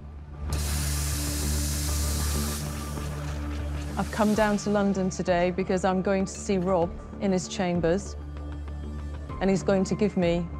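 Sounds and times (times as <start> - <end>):
coffee machine steam spurting as a drink is made: 0.5 - 5.0
speech: 4.0 - 8.2, 9.4 - 10.5.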